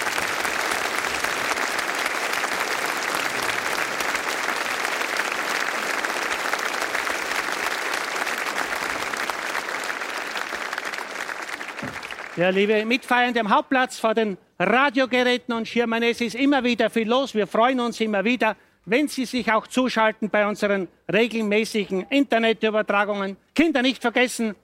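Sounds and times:
audience applause at outdoor concert: 0:00.0 - 0:12.7
speech: 0:12.4 - 0:24.6.

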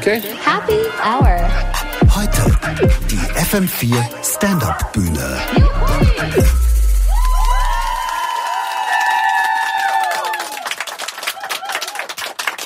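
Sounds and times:
speech: 0:00.0 - 0:06.8
live studio audience at a radio stand-up show cheering: 0:06.9 - 0:12.6.

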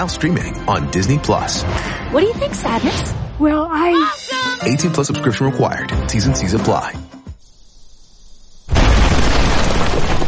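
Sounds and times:
speech: 0:00.0 - 0:07.1
bomb explosion: 0:08.7 - 0:10.2.

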